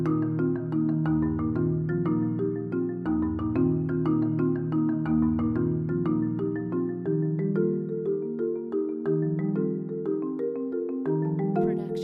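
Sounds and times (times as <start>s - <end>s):
happy marimba music: 0.0s - 12.0s.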